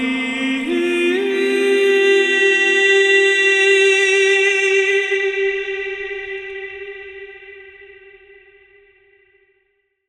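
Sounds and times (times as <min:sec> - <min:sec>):
main vocals in C minor with reverb: 0:00.0 - 0:07.1.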